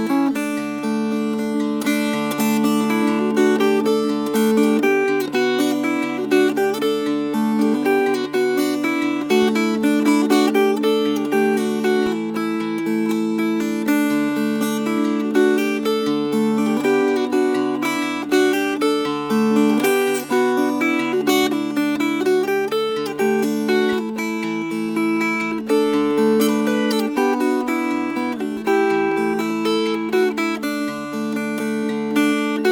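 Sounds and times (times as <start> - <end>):
fingerpicked dulcimer: 0.0 - 32.7.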